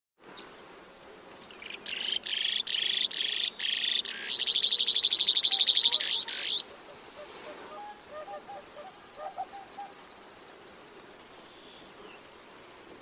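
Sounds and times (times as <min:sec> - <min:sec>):
bird harsh buzzy calls: 0:01.6 - 0:10.0.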